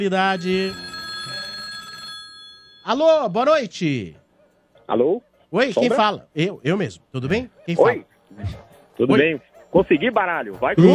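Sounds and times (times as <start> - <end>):
speech: 0.0 - 0.9, 2.8 - 4.2, 4.9 - 10.9
telephone ringing with a metallic bell: 0.0 - 3.4.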